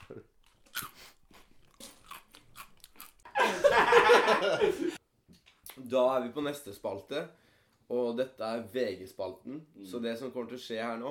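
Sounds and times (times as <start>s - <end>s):
speech: 0.1s - 0.9s, 3.9s - 5.0s, 5.8s - 11.1s
someone eating crunchy food: 0.3s - 3.3s
laughter: 3.3s - 5.0s.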